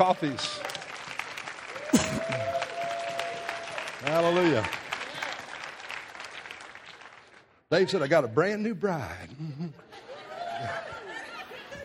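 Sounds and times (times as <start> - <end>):
speech: 0.0 - 0.7, 1.9 - 2.6, 4.0 - 4.8, 7.7 - 9.9, 10.6 - 10.9
audience applause: 0.0 - 7.5
laughter: 9.1 - 11.8.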